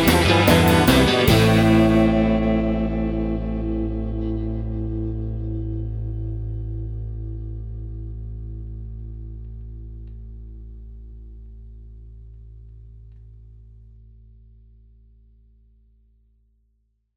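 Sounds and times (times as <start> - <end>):
rock music: 0.0 - 6.0.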